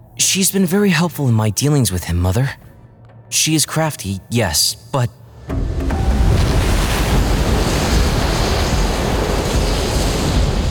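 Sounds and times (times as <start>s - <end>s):
speech: 0.2s - 2.7s, 3.3s - 5.6s
storm rumbling: 5.4s - 10.6s
seawater gushing in: 6.0s - 10.6s.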